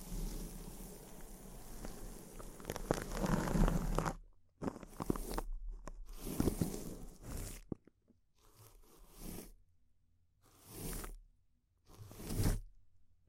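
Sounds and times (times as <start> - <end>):
intense crinkling: 0.0 - 8.0.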